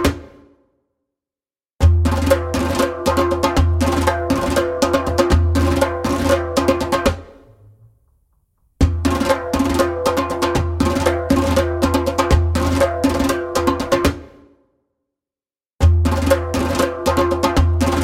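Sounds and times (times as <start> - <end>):
djembe drumming: 1.8 - 7.4, 8.8 - 14.3, 15.8 - 18.0.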